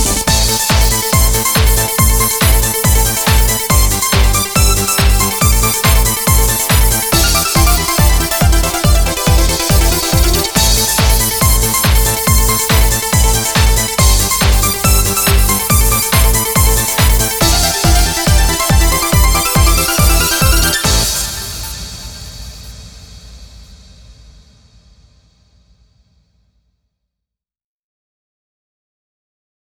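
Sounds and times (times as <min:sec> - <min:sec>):
Russian music beat: 0:00.0 - 0:22.6.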